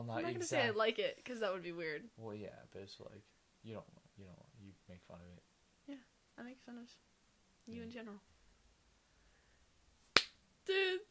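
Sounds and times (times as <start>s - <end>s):
speech: 0.1s - 7.1s, 7.7s - 8.3s, 10.7s - 11.0s
hands slapped together: 10.1s - 10.4s.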